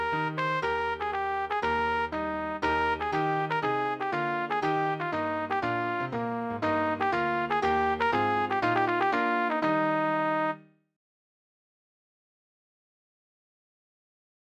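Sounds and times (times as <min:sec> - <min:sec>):
trumpet piece: 0:00.0 - 0:10.7.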